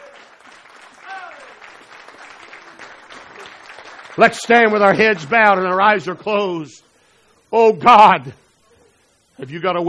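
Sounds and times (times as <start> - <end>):
audience applauding: 0.0 - 6.1
speech: 4.2 - 6.9, 7.5 - 8.4, 9.4 - 9.8.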